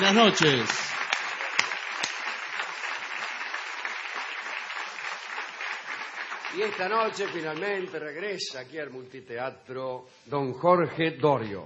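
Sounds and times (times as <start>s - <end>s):
audience applause: 0.0s - 8.3s
speech: 0.1s - 0.9s, 6.6s - 11.6s.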